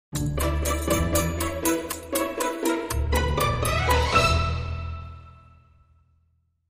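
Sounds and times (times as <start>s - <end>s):
clock ticking sting: 0.2s - 4.0s.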